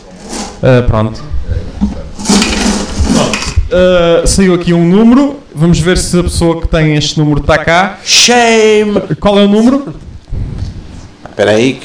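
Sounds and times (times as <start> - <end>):
raffle tombola being shuffled: 0.0 - 0.6, 1.4 - 3.7
speech: 0.6 - 1.4, 3.7 - 10.0, 11.4 - 11.8.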